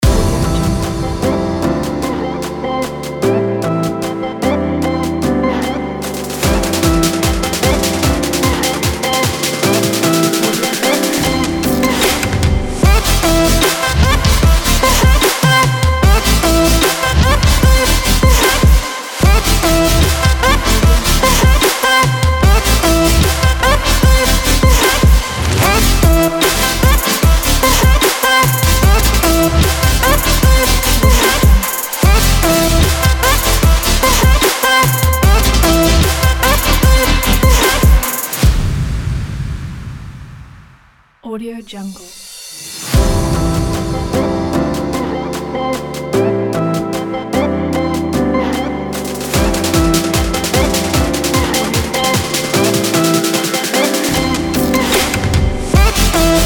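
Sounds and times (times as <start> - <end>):
future bass music: 0.0 - 38.6, 42.9 - 56.4.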